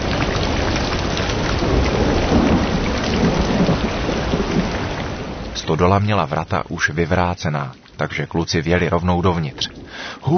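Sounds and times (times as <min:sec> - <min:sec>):
deep rolling thunder: 0:00.0 - 0:05.6
gusts of wind: 0:00.0 - 0:10.3
heavy rain in a thunderstorm: 0:00.0 - 0:10.3
speech: 0:05.7 - 0:10.3.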